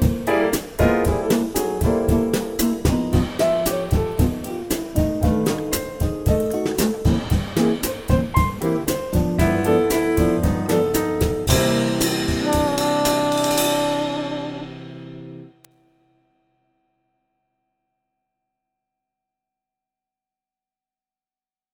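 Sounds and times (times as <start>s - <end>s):
Latin 12-bar music in C at 115 bpm: 0.0s - 15.5s.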